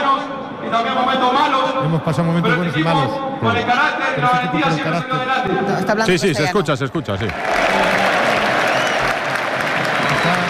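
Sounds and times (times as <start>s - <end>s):
speech: 0.7s - 8.0s
stadium crowd applauding: 7.1s - 10.4s.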